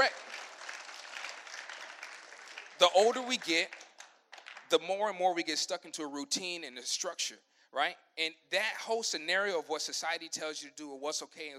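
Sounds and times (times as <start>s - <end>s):
audience applause: 0.0s - 4.7s
speech: 2.8s - 3.8s, 4.7s - 11.5s.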